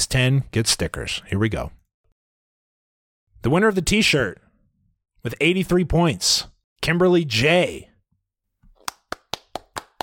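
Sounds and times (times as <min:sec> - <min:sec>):
speech: 0:00.0 - 0:01.8, 0:03.4 - 0:04.4, 0:05.2 - 0:07.9
people clapping for a t-shirt prize winner: 0:08.8 - 0:10.0.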